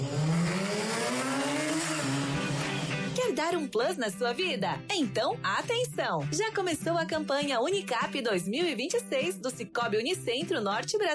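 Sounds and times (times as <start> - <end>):
car engine revving and accelerating: 0.0 - 3.3
speech: 3.4 - 11.1.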